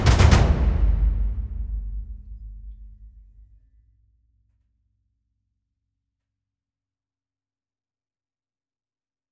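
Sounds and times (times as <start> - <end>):
low drums: 0.0 - 3.6.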